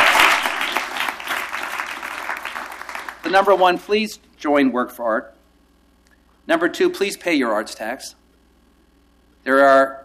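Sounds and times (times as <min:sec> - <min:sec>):
audience applause at an arts-support gathering in Portland: 0:00.0 - 0:03.3
speech: 0:03.3 - 0:05.4, 0:06.4 - 0:08.2, 0:09.4 - 0:10.0.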